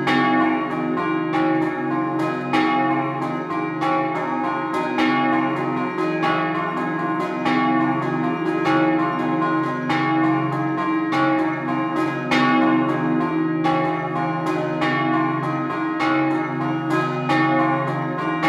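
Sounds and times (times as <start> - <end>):
church bells ringing a scampanottata: 0.0 - 18.4.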